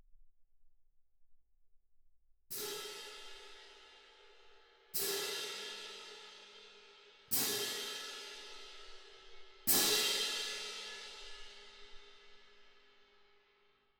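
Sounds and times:
percussion: 0:02.5 - 0:13.5.

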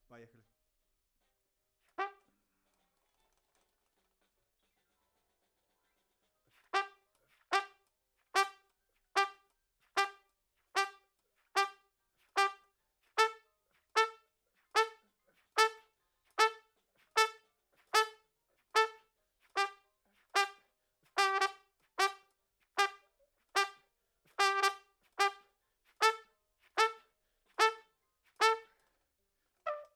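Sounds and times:
trumpet: 0:02.0 - 0:02.3, 0:06.6 - 0:07.8, 0:08.4 - 0:14.2, 0:14.8 - 0:15.0, 0:15.6 - 0:18.2, 0:18.8 - 0:28.7, 0:29.7 - 0:29.9.

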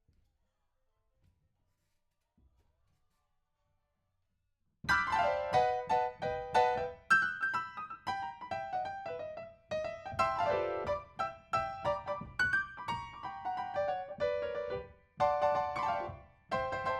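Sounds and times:
rock and roll piano: 0:04.9 - 0:16.9.

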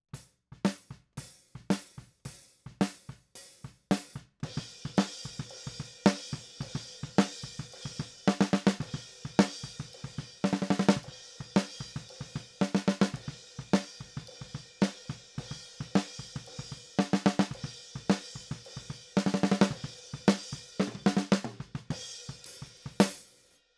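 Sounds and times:
snare drum: 0:00.2 - 0:23.5.

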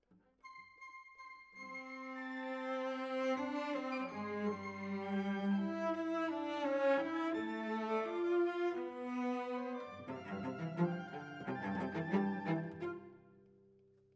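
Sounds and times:
cellos playing: 0:01.6 - 0:13.2.

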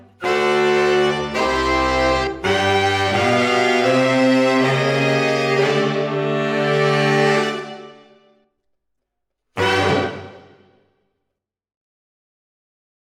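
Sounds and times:
saxophones: 0:00.0 - 0:08.3, 0:09.6 - 0:10.8.

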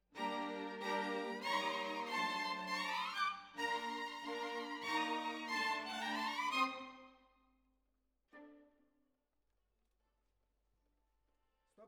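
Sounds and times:
violins: 0:00.2 - 0:07.2, 0:08.4 - 0:08.8.

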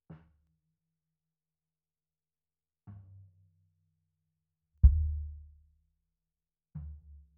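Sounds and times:
sub bass: 0:04.8 - 0:05.7.

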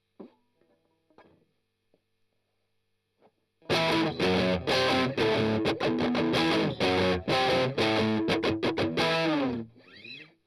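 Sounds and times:
strummed octaves: 0:03.7 - 0:09.7.

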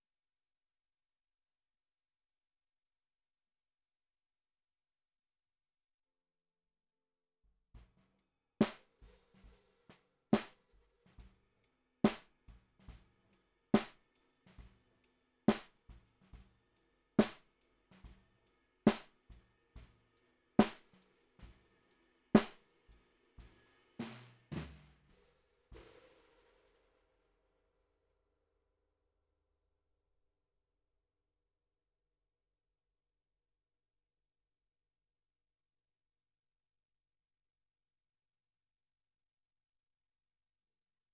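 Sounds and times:
snare drum recorded from the bottom: 0:08.6 - 0:11.3, 0:12.0 - 0:13.0, 0:13.8 - 0:14.7, 0:15.5 - 0:16.4, 0:17.2 - 0:18.2, 0:18.9 - 0:19.2, 0:20.6 - 0:21.6, 0:22.4 - 0:22.7, 0:23.4 - 0:26.7.

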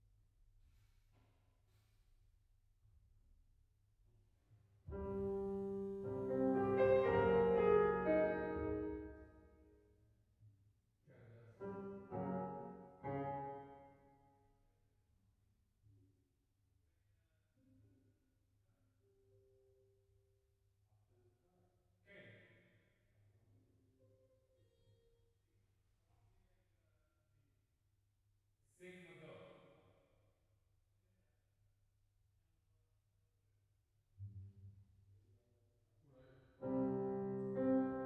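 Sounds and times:
piano: 0:04.9 - 0:09.8, 0:11.5 - 0:14.3, 0:36.6 - 0:38.0.

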